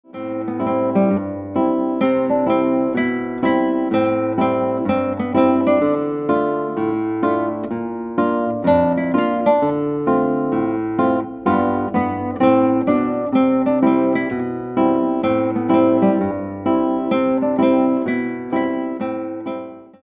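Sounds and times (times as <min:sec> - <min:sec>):
guitar: 0:00.0 - 0:20.0.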